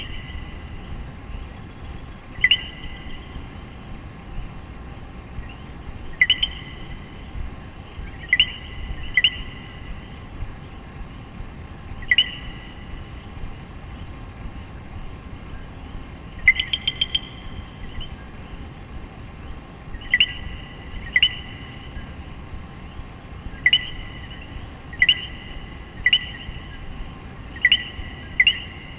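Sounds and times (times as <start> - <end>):
frog chorus: 0.0 - 28.9.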